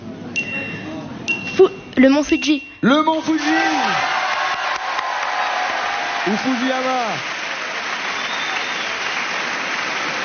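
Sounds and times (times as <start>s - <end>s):
speech: 1.6s - 4.1s, 6.2s - 7.3s
studio audience applauding wildly at a quiz game show: 3.4s - 10.2s.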